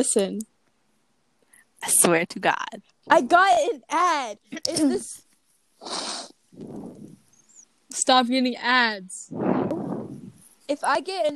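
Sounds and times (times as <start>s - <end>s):
speech: 0.0s - 0.5s, 1.8s - 5.2s, 5.8s - 7.0s, 7.9s - 9.4s, 10.7s - 11.3s
breathing into the microphone: 5.8s - 7.2s, 9.3s - 10.6s.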